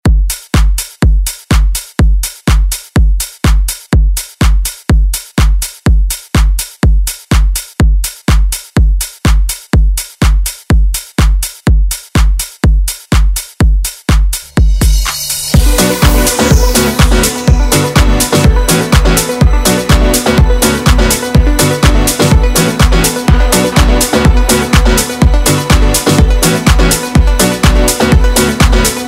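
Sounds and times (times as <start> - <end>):
pop dance music: 0.0 - 29.0.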